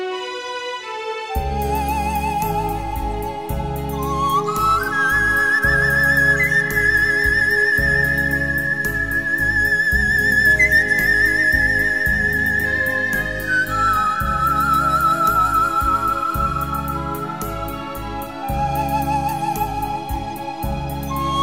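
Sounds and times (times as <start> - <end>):
lonely flute melody: 0.1 - 21.4.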